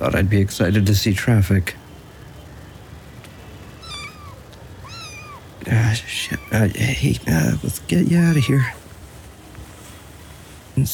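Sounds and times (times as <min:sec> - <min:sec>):
speech: 0:00.0 - 0:01.8, 0:05.7 - 0:08.8
kitten meowing: 0:03.8 - 0:06.6, 0:08.1 - 0:08.8.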